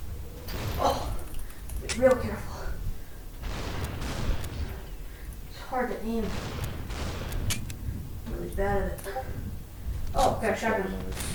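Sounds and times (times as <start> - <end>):
video game gunfire including a shotgun: 0.5 - 2.3, 3.3 - 9.5, 11.0 - 11.3
player talking: 1.8 - 2.8, 5.4 - 6.6, 8.2 - 9.5, 10.1 - 11.3
speech: 2.0 - 2.6, 5.7 - 6.6, 8.5 - 9.5, 10.1 - 11.3.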